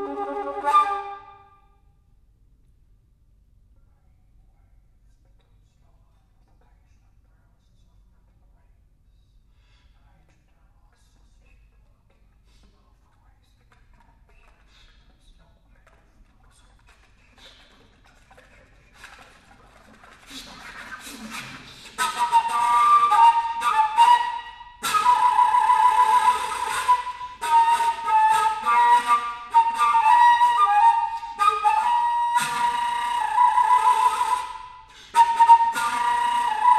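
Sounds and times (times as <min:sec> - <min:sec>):
alto flute: 0:00.0 - 0:01.6, 0:20.7 - 0:36.7.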